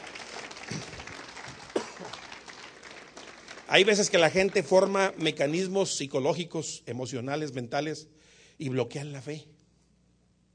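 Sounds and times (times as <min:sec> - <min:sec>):
crowd clapping: 0:00.0 - 0:05.8
speech: 0:03.7 - 0:09.5.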